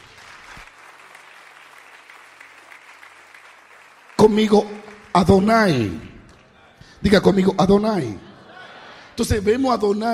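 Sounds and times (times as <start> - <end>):
audience applause: 0.0 - 6.8
speech: 4.2 - 6.1, 7.0 - 8.3, 9.2 - 10.1
laughter: 7.9 - 9.5.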